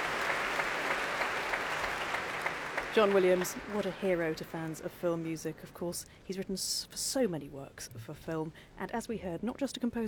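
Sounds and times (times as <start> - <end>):
concert audience applause: 0.0 - 4.1
speech: 3.0 - 10.0.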